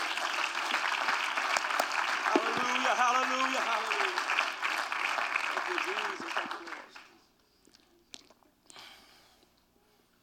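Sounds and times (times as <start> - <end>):
people clapping hands: 0.0 - 7.2
speech: 5.7 - 7.0.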